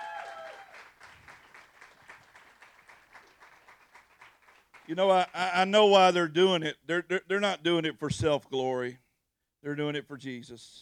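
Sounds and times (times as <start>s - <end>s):
audience applause: 0.0s - 5.4s
speech: 4.9s - 9.0s, 9.6s - 10.8s.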